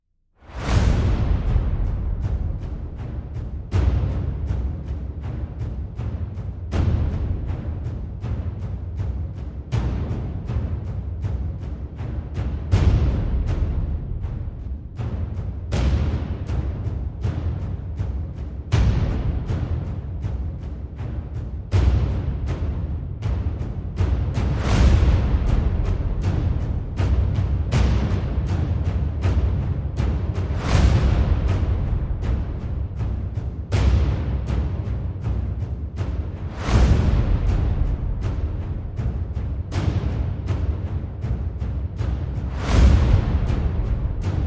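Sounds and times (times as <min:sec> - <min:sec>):
percussion: 0:00.0 - 0:44.4.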